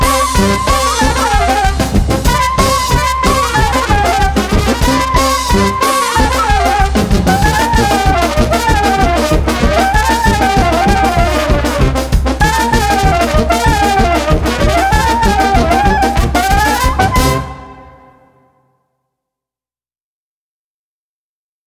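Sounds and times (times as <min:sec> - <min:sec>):
brass band fanfare with clarinet: 0:00.0 - 0:18.5.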